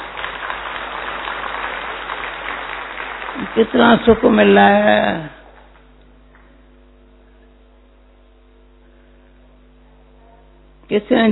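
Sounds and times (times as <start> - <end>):
crowd clapping: 0.0 - 6.6
speech: 3.6 - 5.4, 11.0 - 11.3.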